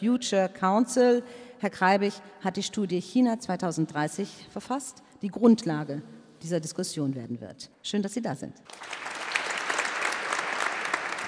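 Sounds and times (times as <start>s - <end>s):
speech: 0.0s - 9.1s
audience clapping at a panel discussion event: 8.7s - 11.2s.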